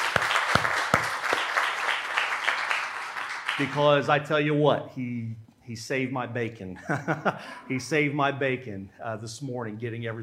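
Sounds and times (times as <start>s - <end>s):
audience applause: 0.0s - 4.0s
speech: 3.6s - 10.2s
laughter: 6.8s - 7.9s.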